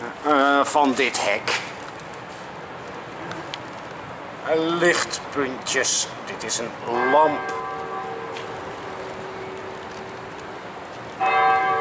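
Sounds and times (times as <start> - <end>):
speech: 0.7 - 1.7, 4.5 - 7.7
church bells ringing: 6.9 - 11.7.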